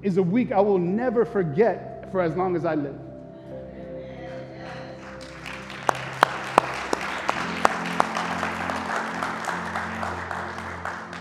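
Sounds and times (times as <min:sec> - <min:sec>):
speech: 0:00.0 - 0:03.0
crowd applauding: 0:04.7 - 0:11.2.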